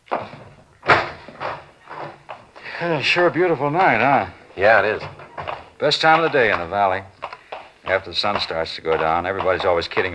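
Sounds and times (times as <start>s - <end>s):
door opening and closing: 0.1s - 2.6s, 3.2s - 7.3s
speech: 2.8s - 5.2s, 5.8s - 7.1s, 7.9s - 10.1s.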